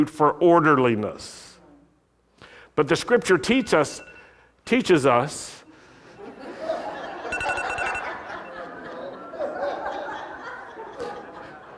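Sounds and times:
speech: 0:00.0 - 0:01.4, 0:02.8 - 0:05.6
alarm beeping: 0:03.7 - 0:04.4, 0:07.3 - 0:08.7
laughter: 0:06.2 - 0:11.7.

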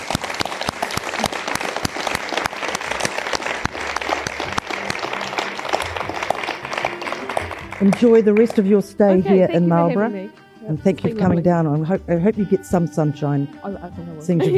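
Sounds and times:
audience applause: 0:00.0 - 0:08.7
speech: 0:07.8 - 0:14.5.

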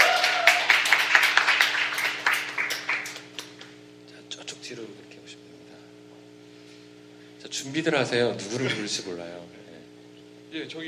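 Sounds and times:
audience applause at a live public recording for a tenth-anniversary show: 0:00.0 - 0:03.7
speech: 0:07.6 - 0:09.6, 0:10.6 - 0:10.8.

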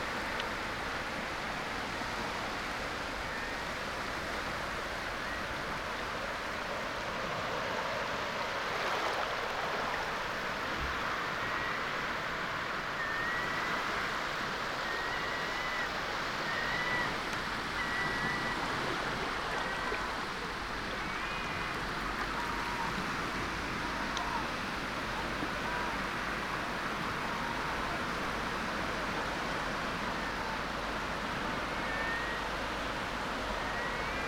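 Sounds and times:
waves washing over a wide open beach at Tenby: 0:00.0 - 0:34.2.

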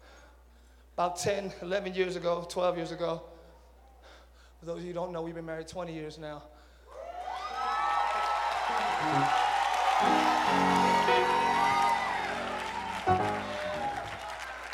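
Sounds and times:
speech: 0:01.0 - 0:03.3, 0:04.6 - 0:06.5, 0:09.0 - 0:09.4
whoops and shouts: 0:06.9 - 0:14.7
audience applause: 0:07.0 - 0:14.7.

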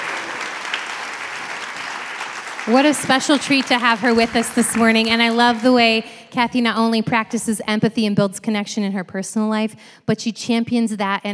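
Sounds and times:
audience applause: 0:00.0 - 0:05.7
speech: 0:02.6 - 0:11.3.

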